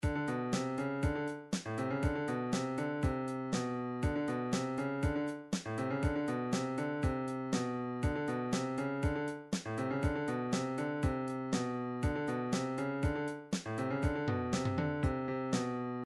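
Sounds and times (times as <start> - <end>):
MIDI funk music: 0.0 - 16.0.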